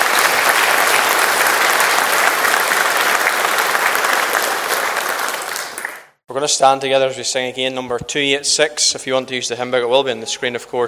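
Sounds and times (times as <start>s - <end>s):
audience applause: 0.0s - 6.2s
speech: 6.4s - 10.8s.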